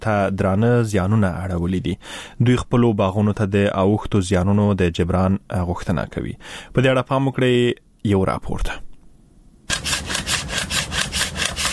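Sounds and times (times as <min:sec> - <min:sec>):
speech: 0:00.0 - 0:08.9
hand saw cutting pomegranate tree wood in an orchard in Kandahar's Arghandab district: 0:09.7 - 0:11.7.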